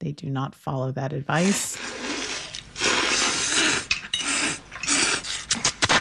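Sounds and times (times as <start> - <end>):
speech: 0.0 - 2.0
people slurping spaghetti: 1.4 - 5.9.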